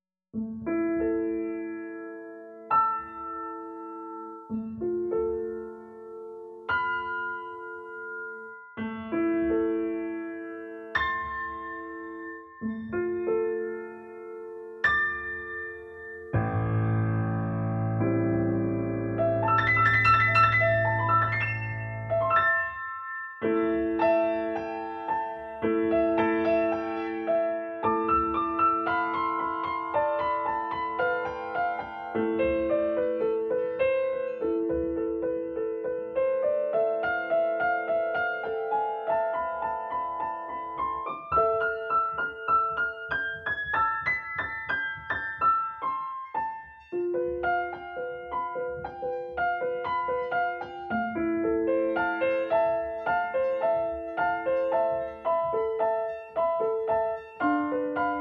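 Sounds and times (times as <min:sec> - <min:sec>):
piano: 0:00.3 - 0:58.1.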